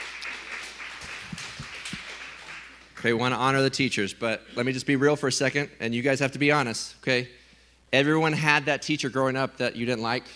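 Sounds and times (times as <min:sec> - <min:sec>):
round of applause for teachers: 0:00.0 - 0:03.2
speech: 0:03.0 - 0:10.3.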